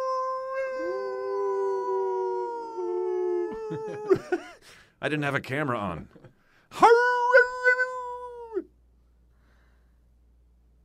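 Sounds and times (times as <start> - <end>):
pet Sparky howling: 0.0 - 4.2, 6.8 - 8.7
laughter: 3.5 - 4.6
speech: 3.7 - 7.0.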